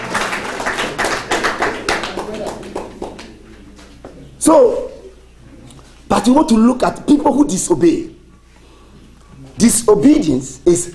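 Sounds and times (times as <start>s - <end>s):
audience clapping: 0.0s - 4.1s
speech: 4.4s - 4.9s, 6.2s - 8.2s, 9.6s - 10.9s.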